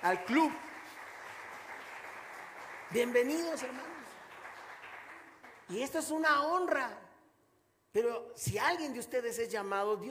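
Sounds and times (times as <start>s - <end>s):
speech: 0.0s - 0.7s, 2.9s - 4.0s, 5.7s - 7.0s, 7.9s - 10.0s
audience applause: 0.0s - 5.8s.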